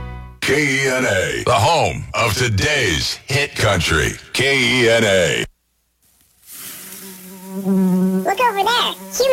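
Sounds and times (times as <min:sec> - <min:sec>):
speech: 0:00.5 - 0:05.5, 0:07.6 - 0:09.3
mosquito buzzing sound effect in a pest control radio ad: 0:06.8 - 0:09.3.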